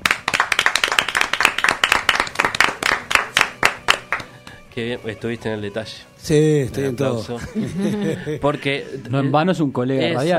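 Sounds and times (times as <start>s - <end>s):
audience applause: 0.0s - 4.3s
speech: 4.8s - 10.3s
laughter: 7.2s - 9.2s.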